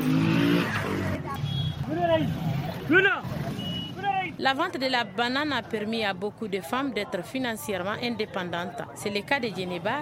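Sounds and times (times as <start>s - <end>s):
motor engines humming and revving in a busy market: 0.0s - 4.8s
market voices chattering: 0.7s - 10.0s
speech: 2.2s - 3.4s, 4.4s - 10.0s.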